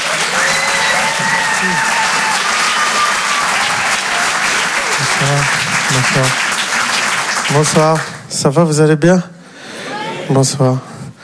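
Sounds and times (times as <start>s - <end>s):
audience applause at a comedy club welcoming a comedian: 0.0s - 8.4s
speech: 6.0s - 6.5s, 7.5s - 9.3s, 10.3s - 10.9s.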